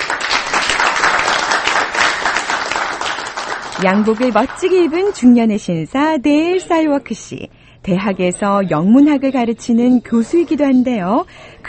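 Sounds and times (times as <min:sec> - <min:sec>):
audience applause: 0:00.0 - 0:05.3
speech: 0:03.8 - 0:11.6.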